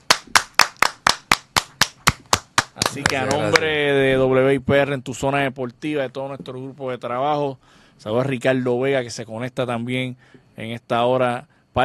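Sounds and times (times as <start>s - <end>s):
person clapping in tribute to a Hall of Fame baseball player: 0.0s - 3.7s
speech: 2.8s - 11.8s.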